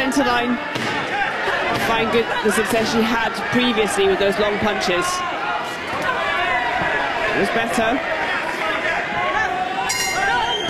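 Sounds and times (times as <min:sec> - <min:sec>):
crowd roar: 0:00.0 - 0:10.6
speech: 0:00.1 - 0:01.0, 0:01.7 - 0:05.4, 0:07.4 - 0:08.2
boxing bell ending the round: 0:09.9 - 0:10.6.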